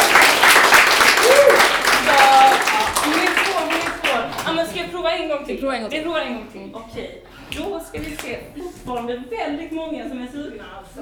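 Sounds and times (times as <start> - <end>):
crowd applauding: 0.0 - 4.8
speech: 5.5 - 11.0.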